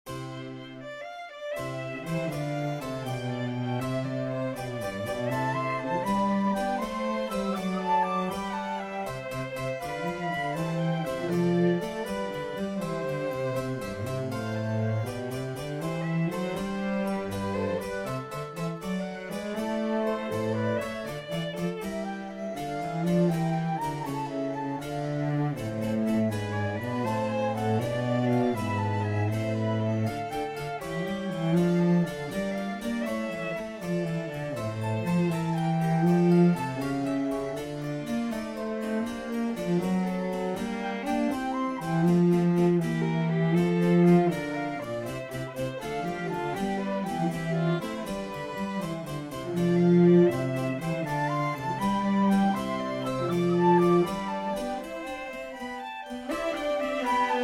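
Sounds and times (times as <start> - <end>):
trio sonata allegro in C: 0.1 - 57.4.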